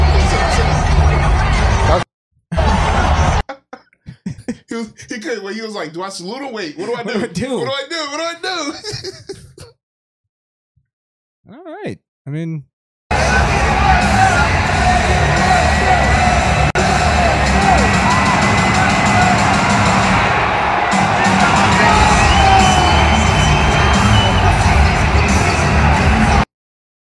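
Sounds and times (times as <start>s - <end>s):
crowd roar with overlapping yells, cheers and whoops: 0.0s - 3.4s, 13.1s - 26.5s
laughter: 2.5s - 5.8s, 6.4s - 9.7s
speech: 4.7s - 9.4s, 11.5s - 12.7s.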